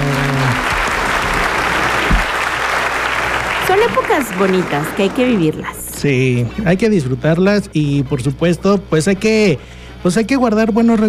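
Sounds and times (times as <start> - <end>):
applause: 0.0 - 5.6
speech: 3.8 - 11.0.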